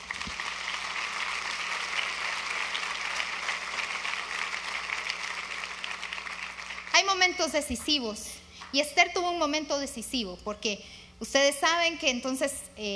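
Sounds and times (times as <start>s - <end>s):
audience applause: 0.0s - 7.0s
speech: 7.0s - 12.9s.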